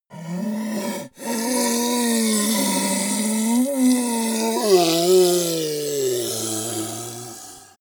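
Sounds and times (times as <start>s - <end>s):
weak slow ogre dying groan: 0.1s - 7.7s.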